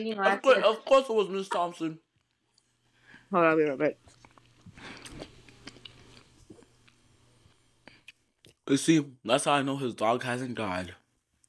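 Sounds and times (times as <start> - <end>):
speech: 0.0 - 2.1, 3.3 - 4.2, 8.7 - 11.0
chewing Reese's peanut butter cup candy: 4.1 - 7.0.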